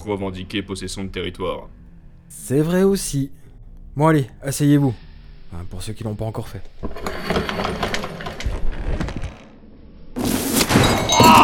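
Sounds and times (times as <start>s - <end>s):
speech: 0.0s - 3.4s, 4.0s - 8.0s
wooden chair crashing as it gives way: 6.8s - 9.4s, 10.4s - 11.4s
wooden chair creaking and splintering under heavy weight: 6.8s - 9.6s.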